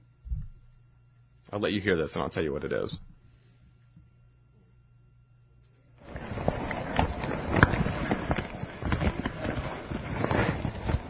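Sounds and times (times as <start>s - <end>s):
speech: 1.5s - 3.1s
bag rustling against a tape recorder microphone: 6.0s - 11.0s
muffled footsteps recorded from a microphone inside a bag: 6.0s - 11.0s.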